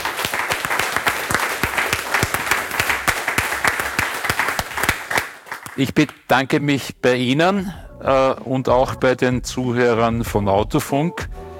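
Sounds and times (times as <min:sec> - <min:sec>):
audience applause: 0:00.0 - 0:05.8
speech: 0:05.8 - 0:11.3.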